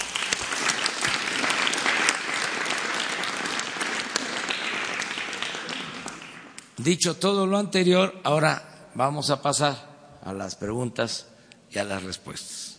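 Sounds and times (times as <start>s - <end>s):
audience applause: 0.0s - 6.7s
speech: 6.8s - 12.6s.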